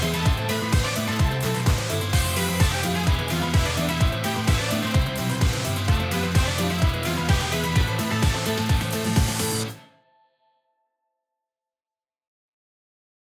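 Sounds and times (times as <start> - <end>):
off-vocal instrumental music: 0.0 - 10.0.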